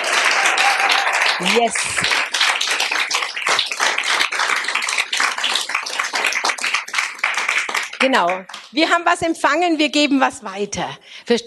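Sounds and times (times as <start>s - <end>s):
audience applause: 0.0s - 8.8s
speech: 1.4s - 2.2s, 8.0s - 11.4s.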